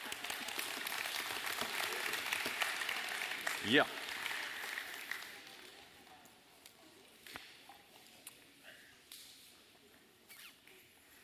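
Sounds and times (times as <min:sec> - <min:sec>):
audience clapping: 0:00.0 - 0:06.0
speech: 0:03.6 - 0:04.0.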